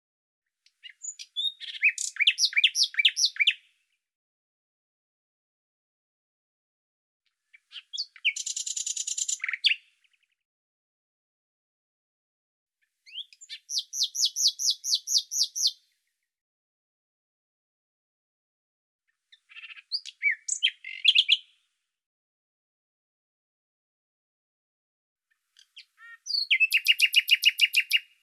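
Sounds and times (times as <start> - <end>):
bird song: 0.6 - 4.1, 7.3 - 10.4, 12.8 - 16.4, 19.1 - 21.8, 25.3 - 28.2.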